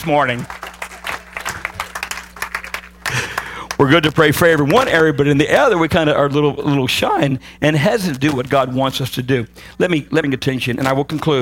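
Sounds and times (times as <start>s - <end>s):
speech: 0.0s - 0.6s, 3.8s - 11.4s
audience clapping hands in praise: 0.0s - 4.4s.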